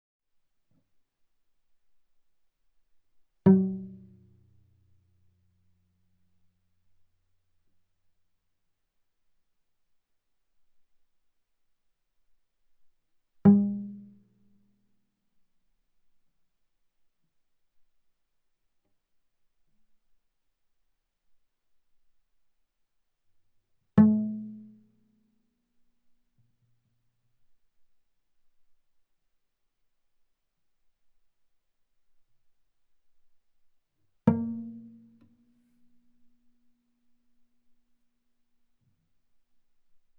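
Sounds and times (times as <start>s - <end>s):
viola pizzicato on the D string fortissimo: 3.5s - 4.4s, 13.5s - 14.1s, 34.3s - 35.8s.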